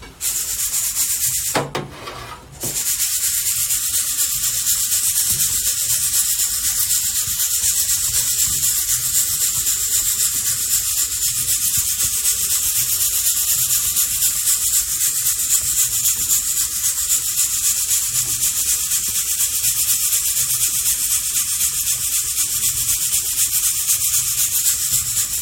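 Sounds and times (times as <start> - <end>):
mocha blend coffee beans roasting: 0.0 - 25.4
sharp scraping strokes: 0.2 - 5.4.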